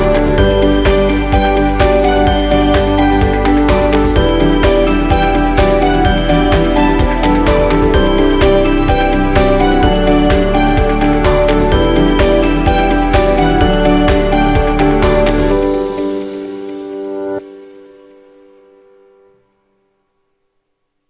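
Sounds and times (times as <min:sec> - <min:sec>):
cinematic corporate music: 0:00.0 - 0:16.6.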